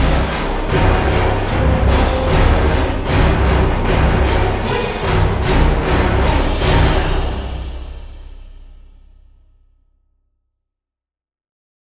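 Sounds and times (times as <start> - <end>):
cinematic orchestral hybrid music: 0.0 - 9.0.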